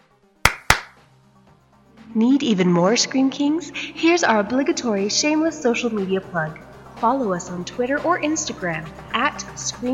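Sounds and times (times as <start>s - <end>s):
single hand clap: 0.4s - 1.1s
speech: 2.1s - 9.9s.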